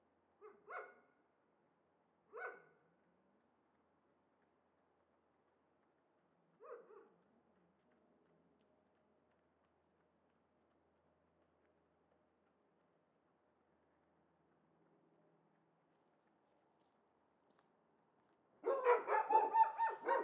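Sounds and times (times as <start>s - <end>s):
dogs shut in cages barking excitedly: 18.6s - 20.2s.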